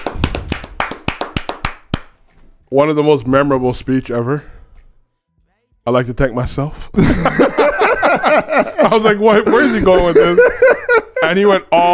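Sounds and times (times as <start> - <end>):
hand clapping: 0.0 - 2.4
speech: 2.7 - 4.5, 5.8 - 11.9
laughter: 7.0 - 11.6.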